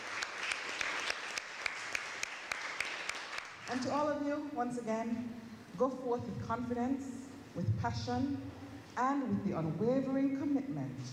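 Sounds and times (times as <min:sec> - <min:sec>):
audience applause: 0:00.0 - 0:03.7
speech: 0:03.7 - 0:11.1.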